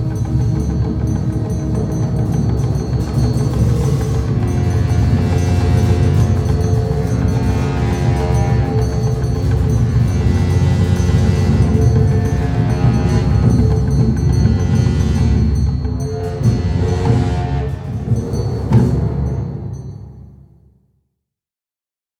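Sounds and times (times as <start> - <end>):
Buddhist ceremonial horns: 0.0 - 20.1
ceremonial cymbals: 0.0 - 20.6
Buddhist monks chanting Tibetan mantras: 1.0 - 18.7.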